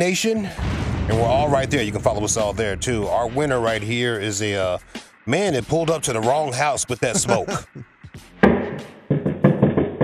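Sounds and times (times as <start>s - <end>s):
speech: 0.0s - 7.9s
laughter: 7.0s - 7.8s
knock on a door: 8.4s - 10.0s.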